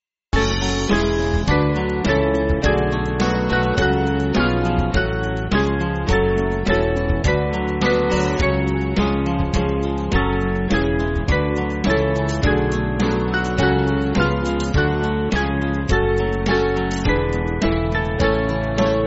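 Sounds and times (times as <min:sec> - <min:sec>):
band backing track for churches: 0:00.4 - 0:19.0.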